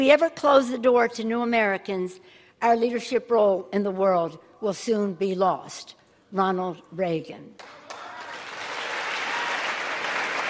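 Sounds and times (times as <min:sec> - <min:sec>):
speech: 0:00.0 - 0:07.8
audience applause on a legislative floor: 0:07.6 - 0:10.4.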